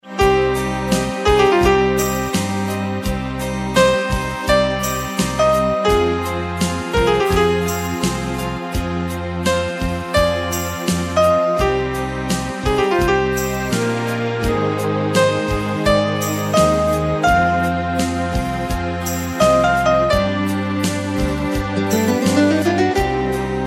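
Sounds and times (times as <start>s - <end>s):
romantic piano: 0.0s - 23.6s.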